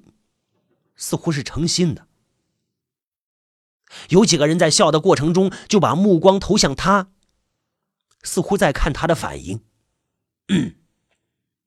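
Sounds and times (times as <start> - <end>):
speech: 1.0 - 2.1, 4.1 - 7.2, 8.2 - 9.7, 10.5 - 10.8
man clearing his throat: 10.5 - 10.9.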